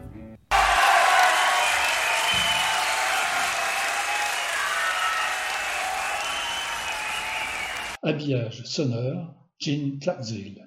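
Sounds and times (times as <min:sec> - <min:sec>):
applause: 0:00.5 - 0:08.0
speech: 0:08.0 - 0:10.6.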